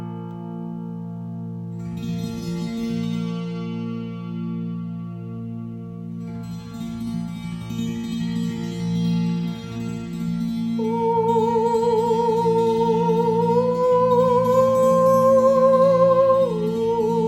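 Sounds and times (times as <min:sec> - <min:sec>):
tanpura: 0:01.7 - 0:17.2
intuitive voice singing: 0:10.8 - 0:17.2.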